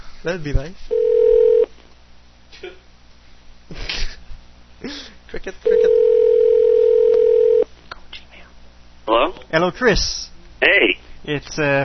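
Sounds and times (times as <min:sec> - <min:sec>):
speech: 0:00.2 - 0:01.1, 0:04.8 - 0:06.0, 0:09.5 - 0:11.8
telephone number being dialed: 0:05.8 - 0:07.6.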